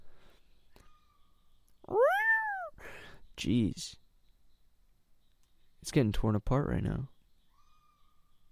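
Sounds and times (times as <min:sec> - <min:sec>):
bobcat screaming: 0:01.9 - 0:02.7
speech: 0:03.4 - 0:04.0, 0:05.8 - 0:07.1.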